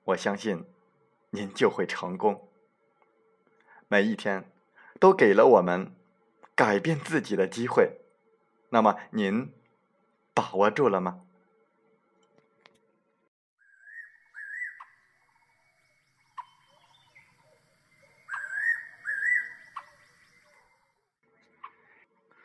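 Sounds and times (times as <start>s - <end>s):
speech: 0.1s - 2.5s, 3.9s - 6.0s, 6.6s - 8.0s, 8.7s - 9.6s, 10.4s - 11.2s
birds chirping in the morning: 13.7s - 21.0s.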